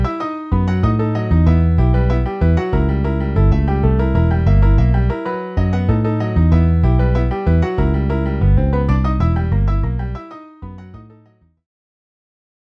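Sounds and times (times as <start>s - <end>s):
piano bass line: 0.0s - 11.6s.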